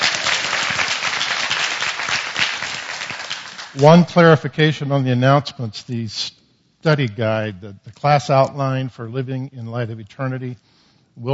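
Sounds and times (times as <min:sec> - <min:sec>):
audience clapping: 0:00.0 - 0:04.1
speech: 0:03.8 - 0:11.3.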